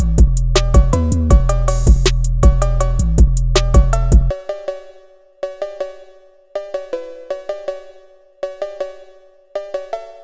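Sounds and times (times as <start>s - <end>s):
phonk music: 0.0s - 4.4s.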